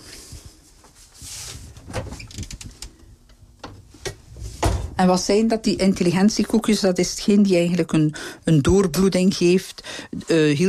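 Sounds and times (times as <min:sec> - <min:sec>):
refrigerator door opening and closing: 0:01.7 - 0:02.8, 0:03.6 - 0:05.0
speech: 0:05.0 - 0:10.6.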